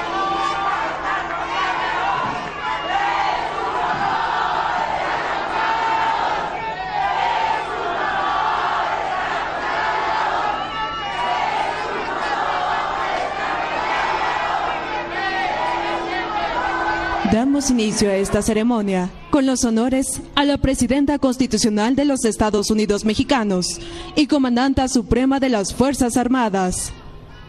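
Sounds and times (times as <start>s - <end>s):
crowd cheering to welcome Mexico's president at a ceremony: 0.0s - 18.9s
speech: 17.6s - 27.0s.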